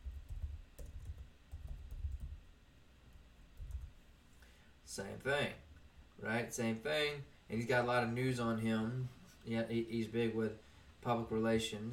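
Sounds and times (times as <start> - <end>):
soft typing on a computer keyboard: 0.0 - 2.4, 3.6 - 3.9
low hum: 0.0 - 11.9
speech: 4.9 - 5.6, 6.2 - 11.9.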